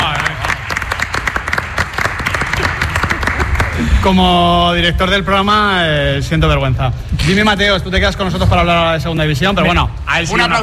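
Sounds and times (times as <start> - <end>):
applause: 0.0 - 4.1
speech: 4.0 - 10.6.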